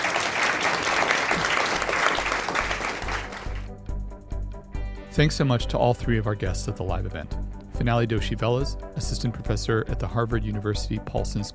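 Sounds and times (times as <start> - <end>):
audience applause: 0.0 - 3.7
speech: 5.2 - 11.5.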